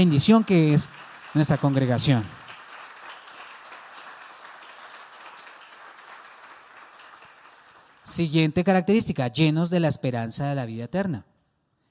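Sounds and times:
speech: 0:00.0 - 0:02.4, 0:08.2 - 0:11.3
audience applauding: 0:00.0 - 0:08.3.

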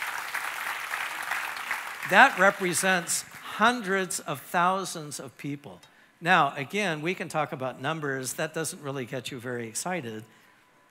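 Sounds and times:
audience clapping: 0:00.0 - 0:04.0
speech: 0:02.1 - 0:10.4.

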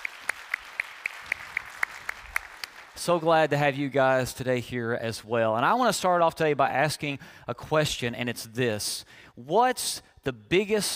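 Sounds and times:
church congregation clapping to welcome worshippers: 0:00.0 - 0:03.4
speech: 0:03.0 - 0:10.9.

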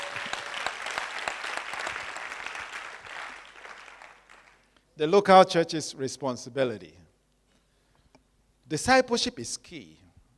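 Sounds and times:
crowd clapping: 0:00.0 - 0:04.7
speech: 0:05.0 - 0:07.0, 0:08.7 - 0:10.0.

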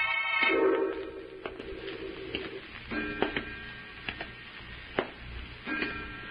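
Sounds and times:
footsteps in a room: 0:00.3 - 0:04.3.

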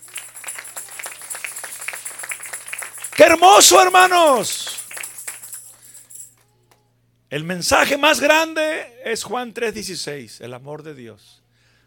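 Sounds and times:
audience applause: 0:00.0 - 0:05.8
speech: 0:03.2 - 0:04.8, 0:07.3 - 0:11.4.

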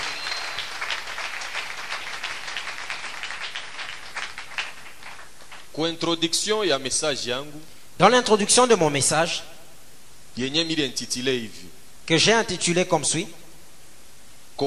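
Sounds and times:
church congregation applauding during an evangelist's sermon: 0:00.0 - 0:05.8
speech: 0:05.8 - 0:09.5, 0:10.4 - 0:13.4.

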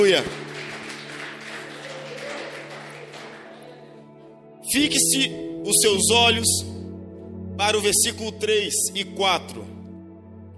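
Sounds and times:
speech: 0:00.0 - 0:00.4, 0:04.7 - 0:06.8, 0:07.6 - 0:09.8
audience applause: 0:00.0 - 0:04.0.

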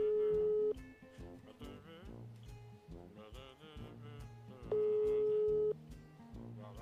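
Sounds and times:
telephone ringback tone from a call waiting to be answered: 0:00.0 - 0:00.8, 0:04.7 - 0:05.8.

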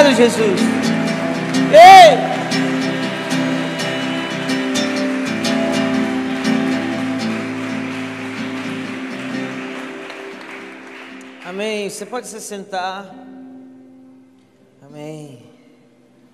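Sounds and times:
audience applauding: 0:00.0 - 0:12.4
speech: 0:00.1 - 0:01.0, 0:01.6 - 0:02.7, 0:11.6 - 0:13.4, 0:14.9 - 0:15.5.

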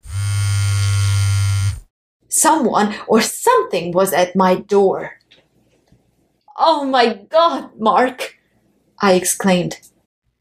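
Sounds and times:
mobile phone buzzing on vibrate: 0:00.0 - 0:01.9
speech: 0:02.4 - 0:05.2, 0:06.6 - 0:08.3, 0:09.0 - 0:09.9.

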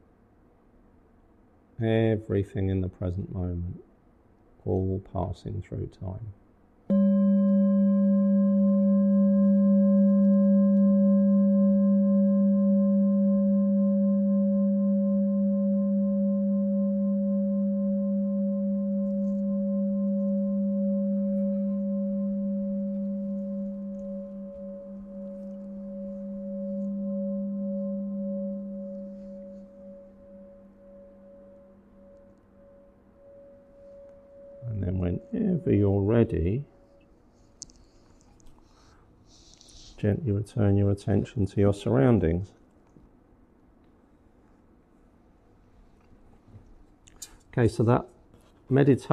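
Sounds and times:
speech: 0:01.8 - 0:03.9, 0:04.6 - 0:06.4, 0:40.4 - 0:42.6, 0:47.6 - 0:48.1, 0:48.7 - 0:49.1
meditation bell ringing: 0:06.9 - 0:38.1.

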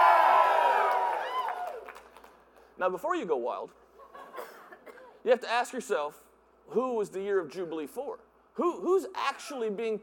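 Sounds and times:
crowd cheering wildly: 0:00.0 - 0:02.0
speech: 0:02.8 - 0:03.9, 0:05.2 - 0:10.0.

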